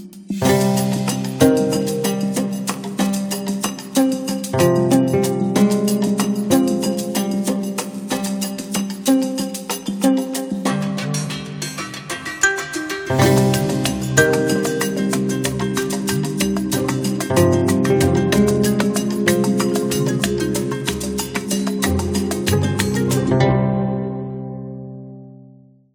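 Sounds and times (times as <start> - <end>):
oud playing: 0.4 - 25.1.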